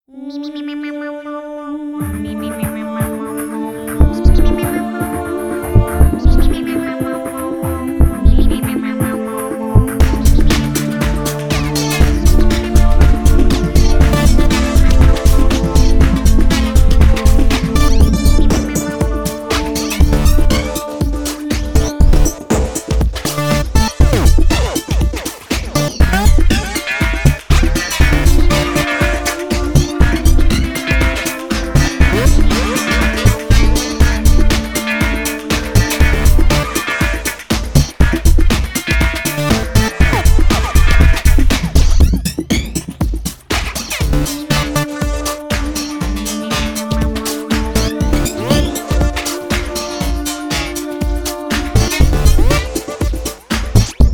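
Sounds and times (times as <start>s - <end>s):
electronic EDM music: 2.1s - 54.1s.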